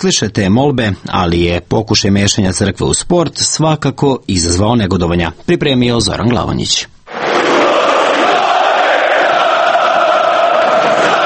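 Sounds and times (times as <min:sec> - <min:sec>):
speech: 0:00.0 - 0:07.0
football fans chanting in their stadium: 0:07.1 - 0:11.2.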